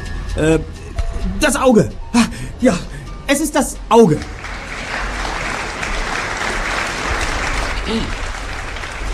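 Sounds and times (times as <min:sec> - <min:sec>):
speech: 0:00.3 - 0:04.3, 0:07.9 - 0:08.2
restrained applause from the stands: 0:03.9 - 0:09.1.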